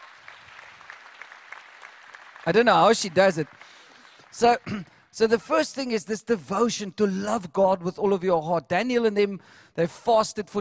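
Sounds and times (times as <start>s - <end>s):
round of applause: 0.0s - 5.2s
speech: 2.5s - 10.5s.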